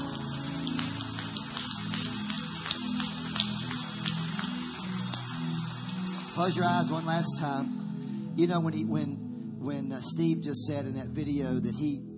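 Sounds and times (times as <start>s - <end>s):
audience applause: 0.0s - 6.9s
speech: 6.4s - 7.8s, 8.4s - 12.1s.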